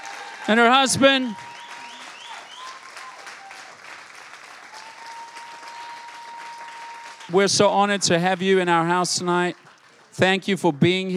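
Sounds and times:
audience applause: 0.0s - 11.1s
speech: 0.5s - 1.5s, 7.3s - 9.6s, 10.2s - 11.1s.

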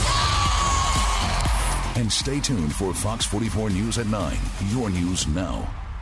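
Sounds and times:
crowd cheering: 0.0s - 3.2s
speech: 2.0s - 5.8s.

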